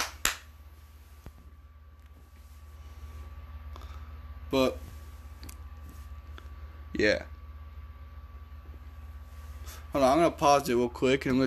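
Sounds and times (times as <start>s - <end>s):
hand clap: 0.0s - 0.5s
speech: 4.5s - 4.8s, 7.0s - 7.3s, 10.0s - 11.4s.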